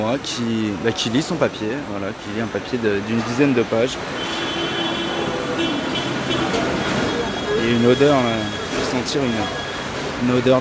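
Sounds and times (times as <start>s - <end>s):
speech: 0.0s - 4.4s, 7.6s - 10.5s
factory machinery noise: 4.0s - 10.5s.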